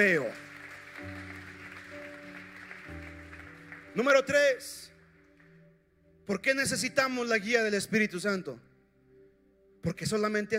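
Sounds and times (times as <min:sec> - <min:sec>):
speech: 0:00.0 - 0:00.4, 0:04.0 - 0:04.9, 0:06.3 - 0:08.7, 0:09.8 - 0:10.5
crowd applause: 0:00.0 - 0:04.4.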